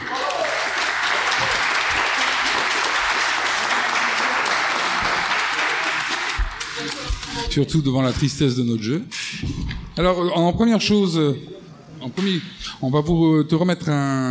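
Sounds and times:
audience applauding the winners: 0.0s - 7.4s
speech: 7.6s - 14.2s.

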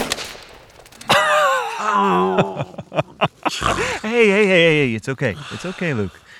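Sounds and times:
rifle shot: 0.0s - 1.3s
laughter: 1.0s - 6.1s
wailing vocal cry: 1.1s - 4.1s
speech: 1.9s - 6.3s.

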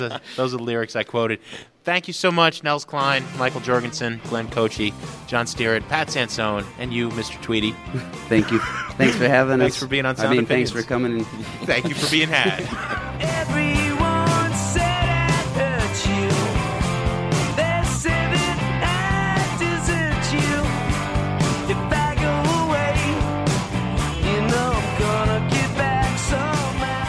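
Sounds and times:
laughter: 0.0s - 0.4s, 7.8s - 13.6s
speech: 0.0s - 13.8s
drums in a rock band cover of a 1960s folk-rock song: 2.9s - 27.0s
guitars in a rock band cover of a 1960s folk-rock song: 3.0s - 27.0s
sung melody in a rock band cover of a 1960s folk-rock song: 11.8s - 16.7s, 17.5s - 20.8s, 21.5s - 23.4s, 24.1s - 27.0s.

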